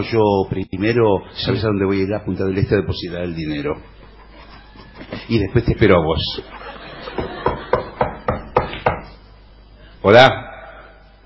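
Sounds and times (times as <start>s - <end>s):
speech: 0.0s - 4.0s, 5.0s - 6.6s, 10.0s - 10.5s
laughter: 6.2s - 8.3s
knocking on a door: 7.2s - 9.1s.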